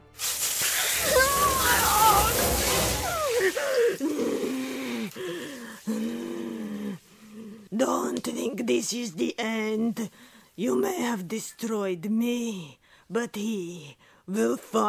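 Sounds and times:
water spraying from a shower hose: 0.2s - 6.6s
speech: 8.2s - 14.8s.

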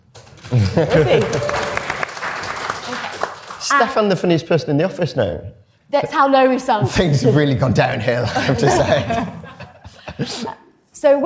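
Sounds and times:
speech: 0.5s - 1.6s, 3.7s - 9.4s, 10.2s - 11.2s
laughter: 0.5s - 1.8s, 6.9s - 10.7s
audience cheering: 0.5s - 3.2s.

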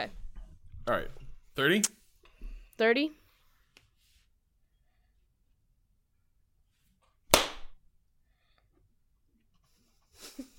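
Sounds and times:
speech: 0.9s - 2.0s, 2.8s - 3.2s
hand clap: 7.3s - 7.8s.

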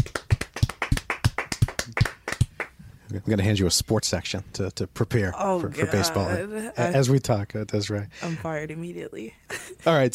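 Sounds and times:
small group applauding: 0.0s - 2.8s
speech: 3.1s - 10.1s.

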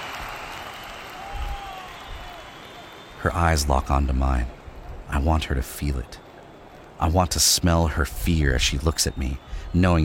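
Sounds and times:
crowd applause: 0.0s - 3.5s
speech: 3.2s - 6.2s, 7.0s - 10.0s.

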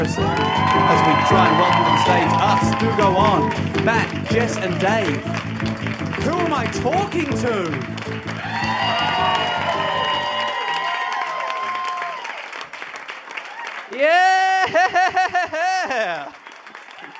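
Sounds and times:
comedy festival crowd shouting whoops: 0.0s - 3.6s, 8.4s - 12.5s, 13.4s - 14.9s
speech: 0.0s - 8.8s, 14.0s - 16.4s
sustained musical tone: 0.0s - 10.2s
comedy festival crowd in Melbourne applauding: 0.0s - 17.1s
laughter: 14.0s - 16.4s.

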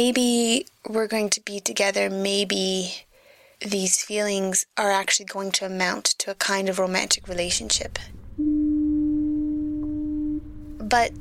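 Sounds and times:
speech: 0.0s - 8.5s, 10.9s - 11.1s
foghorn-like horn blast: 8.2s - 11.1s.

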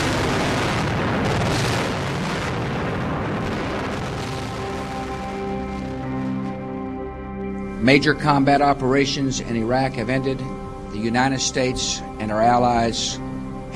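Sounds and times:
heavy bombardment explosions in Baghdad on the opening night of the Iraq war: 0.0s - 6.8s
sustained tonal drone: 0.0s - 13.7s
speech: 7.8s - 13.7s.

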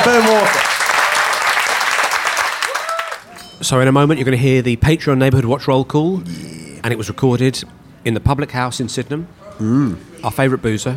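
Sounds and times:
audience applause: 0.0s - 3.3s
speech: 3.6s - 10.9s.

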